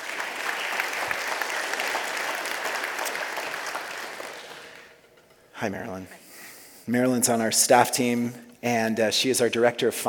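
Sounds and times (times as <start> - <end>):
audience applause welcoming a speaker: 0.0 - 5.0
speech: 5.6 - 6.2, 6.9 - 10.0.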